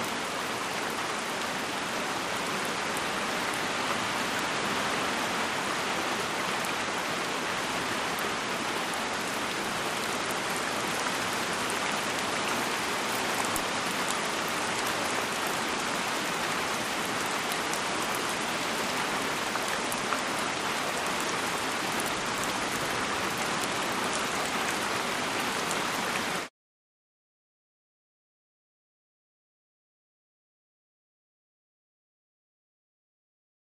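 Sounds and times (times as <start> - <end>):
light tropical rain: 0.0 - 26.5.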